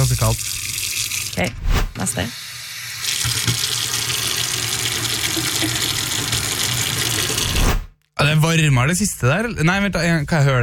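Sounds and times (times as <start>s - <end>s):
running tap water: 0.0s - 7.8s
speech: 1.4s - 2.4s, 8.6s - 10.6s.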